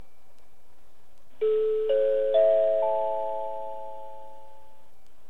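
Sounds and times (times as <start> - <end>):
Shizuoka station, Kodama train: 1.4 - 4.8.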